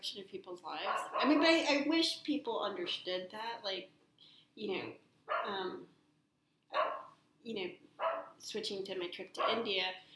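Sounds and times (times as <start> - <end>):
speech: 0.0 - 4.0, 4.6 - 6.0, 6.7 - 10.1
dog barking: 0.9 - 1.5, 5.3 - 5.6, 6.7 - 7.2, 8.0 - 8.4, 9.4 - 9.7.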